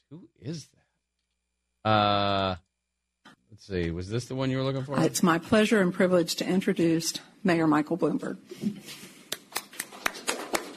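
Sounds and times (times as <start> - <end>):
speech: 0.1 - 0.8, 1.8 - 2.6, 3.6 - 9.1
one person clapping: 9.3 - 10.7.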